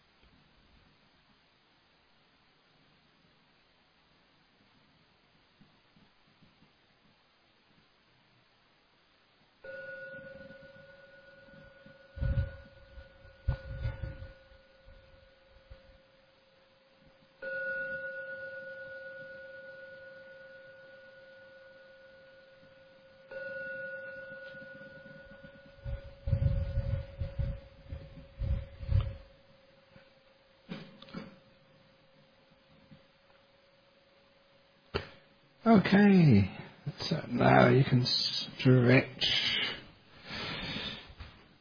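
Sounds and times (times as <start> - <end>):
meditation gong ringing: 9.6 - 16.4, 17.4 - 29.5
soft low thumps: 12.2 - 15.9, 25.2 - 29.4
speech: 35.6 - 39.4.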